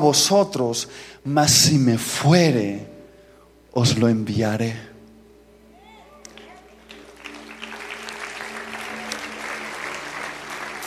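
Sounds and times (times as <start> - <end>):
speech: 0.0 - 2.9, 3.7 - 4.9
audience applause: 6.4 - 10.8.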